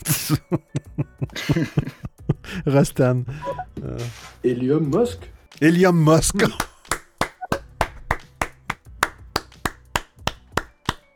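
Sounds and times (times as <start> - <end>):
speech: 0.0 - 0.8, 1.5 - 1.8, 2.6 - 6.6
laughter: 0.0 - 2.4
one person clapping hands: 6.4 - 11.1.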